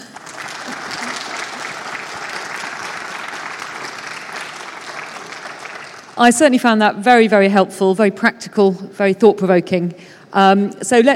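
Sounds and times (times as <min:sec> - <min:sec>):
audience applause: 0:00.0 - 0:06.2
speech: 0:06.2 - 0:11.1.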